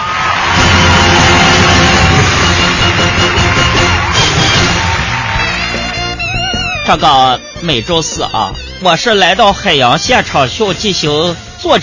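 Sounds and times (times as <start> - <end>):
audience applause: 0.0 - 7.2
speech: 6.9 - 11.8.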